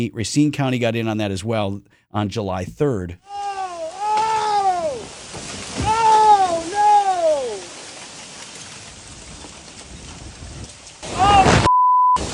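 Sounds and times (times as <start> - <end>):
speech: 0.0 - 3.4
trees coming down in storm winds: 3.3 - 12.3
strong storm winds in Lake Geneva: 4.8 - 12.3.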